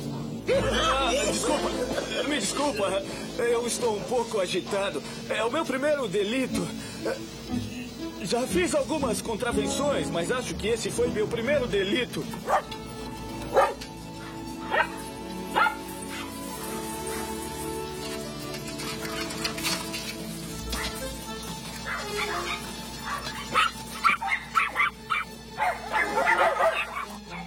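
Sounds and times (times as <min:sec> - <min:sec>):
laughter: 0:00.5 - 0:03.1
speech: 0:02.4 - 0:07.6, 0:08.2 - 0:12.8
dogs barking in a dubbed film scene: 0:07.0 - 0:07.3, 0:12.4 - 0:12.8, 0:13.4 - 0:19.8, 0:20.5 - 0:27.4
dogs whimpering: 0:13.5 - 0:17.5, 0:20.7 - 0:21.1, 0:21.8 - 0:27.4.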